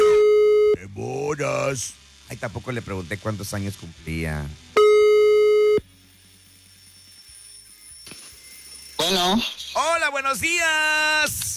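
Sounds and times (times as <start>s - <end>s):
telephone line buzzing beep: 0.0s - 0.8s, 4.8s - 9.3s
faint hum: 0.0s - 11.5s
speech: 1.4s - 4.8s, 9.1s - 11.5s.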